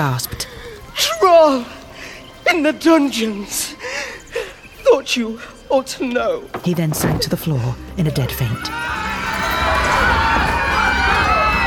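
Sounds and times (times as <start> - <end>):
speech: 0.0 - 1.8, 2.4 - 4.0, 4.9 - 9.1
crowd uproar: 8.6 - 11.6.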